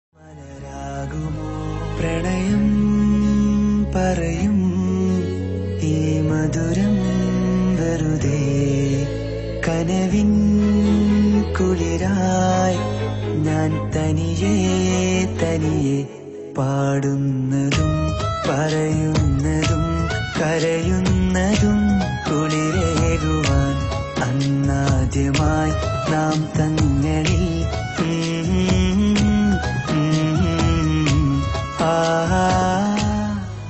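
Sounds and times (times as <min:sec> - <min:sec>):
Malayalam love song ringtone: 0:00.2 - 0:33.6.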